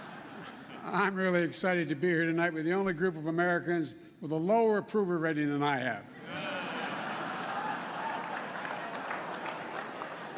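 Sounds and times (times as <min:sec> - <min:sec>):
laughter: 0:00.0 - 0:01.3, 0:06.1 - 0:10.3
speech: 0:00.8 - 0:06.4
tepid audience applause: 0:06.3 - 0:10.3.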